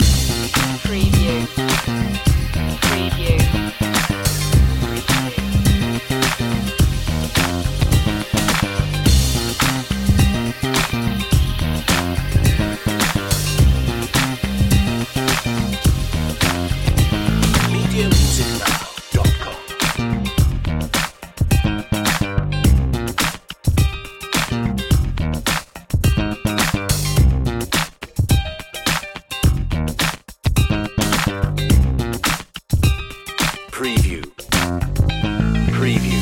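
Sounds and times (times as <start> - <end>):
funky loop: 0.0 - 36.2.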